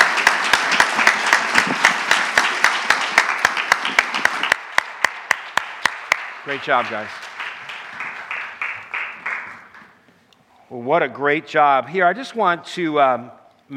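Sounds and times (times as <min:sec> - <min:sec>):
audience applause: 0:00.0 - 0:10.0
speech: 0:06.5 - 0:07.2, 0:10.7 - 0:13.7.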